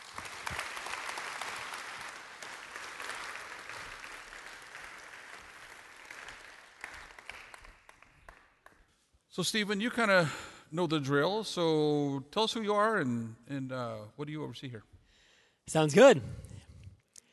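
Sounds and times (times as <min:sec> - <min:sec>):
audience applause: 0:00.0 - 0:08.8
speech: 0:09.4 - 0:14.9, 0:15.7 - 0:16.4.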